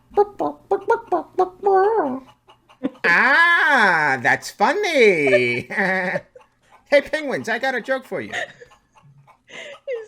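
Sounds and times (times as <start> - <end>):
person imitating chicken clucking in a Muppets theme park show: 0.0 - 4.2, 5.0 - 6.3
laughter: 2.8 - 4.2, 4.9 - 10.0
speech: 3.1 - 6.3, 6.9 - 8.6.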